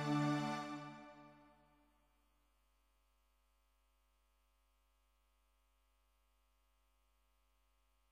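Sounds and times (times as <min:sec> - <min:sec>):
strings: 0:00.0 - 0:01.5.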